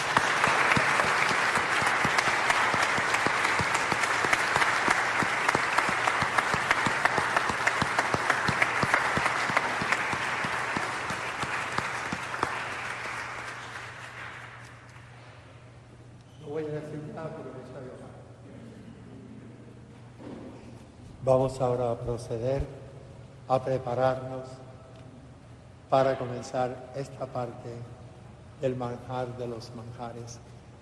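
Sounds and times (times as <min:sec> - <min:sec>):
audience applause: 0:00.0 - 0:14.9
speech: 0:21.5 - 0:22.8, 0:23.5 - 0:24.6, 0:25.9 - 0:28.0, 0:28.6 - 0:30.5.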